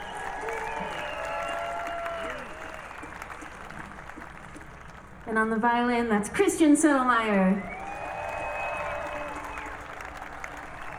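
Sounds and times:
whistles and whoops: 0:00.0 - 0:03.9, 0:07.6 - 0:10.9
audience applause for band member: 0:00.0 - 0:05.3, 0:07.6 - 0:10.9
speech: 0:05.3 - 0:07.7.

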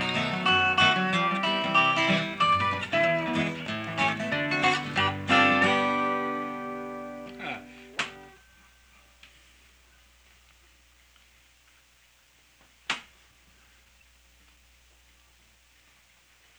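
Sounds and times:
instrumental music: 0:00.0 - 0:08.4.

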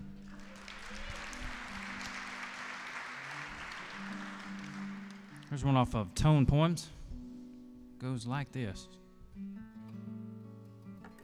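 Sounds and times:
concert audience applauding musicians: 0:00.0 - 0:05.8
speech: 0:05.5 - 0:07.0, 0:08.0 - 0:09.5.

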